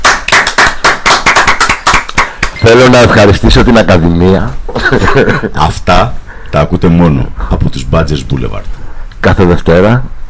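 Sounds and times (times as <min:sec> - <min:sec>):
small group applause: 0:00.0 - 0:02.6
speech: 0:02.6 - 0:10.2
laughter: 0:04.7 - 0:05.7.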